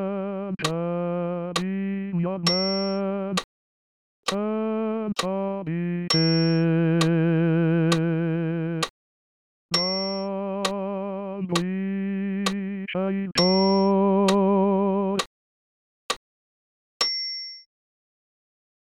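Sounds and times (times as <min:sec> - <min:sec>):
bass voice singing: 0:00.0 - 0:03.4, 0:04.3 - 0:08.9, 0:09.7 - 0:15.2.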